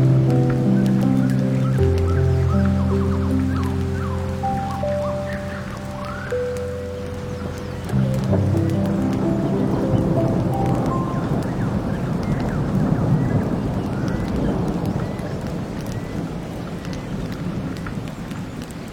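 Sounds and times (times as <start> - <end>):
sea: 0.0 - 13.8
forest ambience: 0.0 - 17.4
campfire: 0.0 - 18.8
rain: 0.0 - 18.8
water: 0.0 - 18.8
wind: 0.0 - 18.8.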